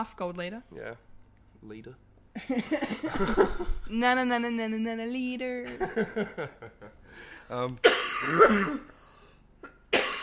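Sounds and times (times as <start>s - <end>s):
speech: 0.0s - 8.9s
person coughing: 7.8s - 9.0s, 9.6s - 10.2s.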